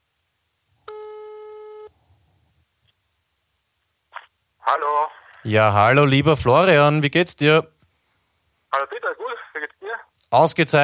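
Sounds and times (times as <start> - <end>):
telephone ringing tone: 0.9 - 1.9
speech: 4.7 - 7.7, 10.3 - 10.8.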